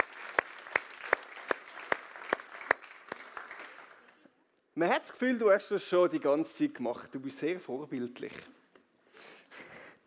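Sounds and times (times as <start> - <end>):
audience applause: 0.0 - 4.2
speech: 4.8 - 8.6.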